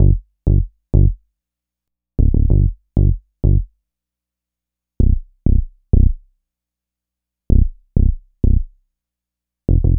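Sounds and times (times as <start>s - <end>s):
dub bass: 0.0s - 1.2s, 2.2s - 3.7s, 5.0s - 6.2s, 7.5s - 8.7s, 9.7s - 9.9s.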